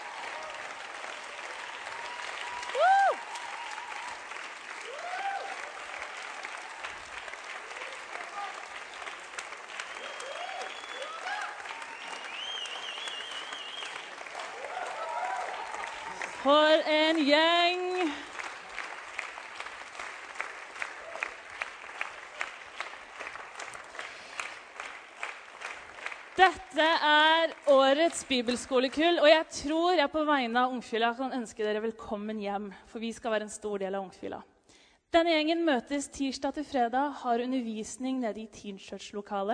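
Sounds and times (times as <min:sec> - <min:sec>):
audience applauding: 0:00.0 - 0:29.2
speech: 0:16.5 - 0:18.2, 0:28.1 - 0:34.5, 0:35.1 - 0:39.5.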